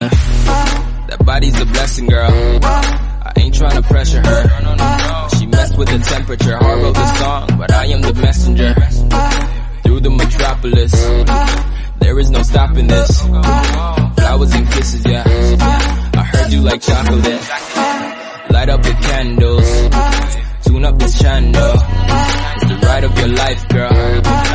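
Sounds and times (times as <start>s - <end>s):
background music: 0.0s - 24.5s.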